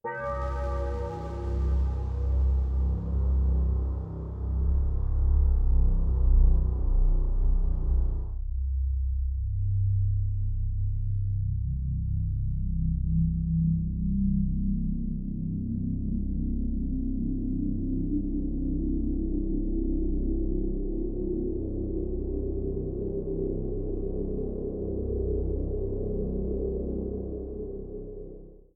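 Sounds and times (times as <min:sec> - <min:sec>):
ambient music: 0:00.0 - 0:28.7.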